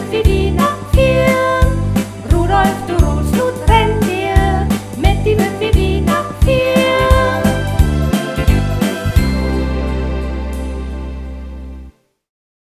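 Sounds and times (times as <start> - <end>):
person singing: 0.0 - 7.8
instruments playing: 1.1 - 11.9.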